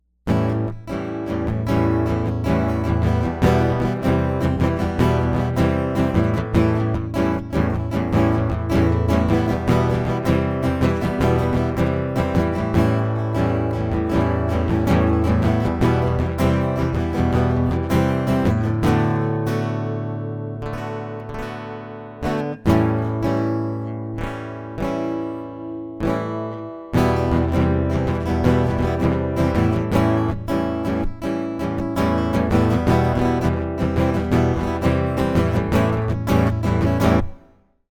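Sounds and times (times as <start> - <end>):
acoustic music: 0.0 - 37.5.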